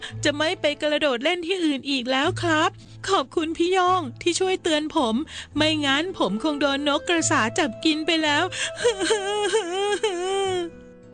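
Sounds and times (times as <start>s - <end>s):
speech: 0.1s - 10.4s
voice imitating a cartoon frog crying: 8.8s - 10.7s.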